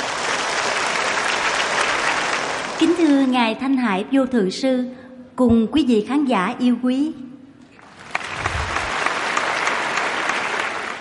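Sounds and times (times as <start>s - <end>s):
audience applause: 0.0s - 2.9s, 7.8s - 10.9s
speech: 2.8s - 7.3s.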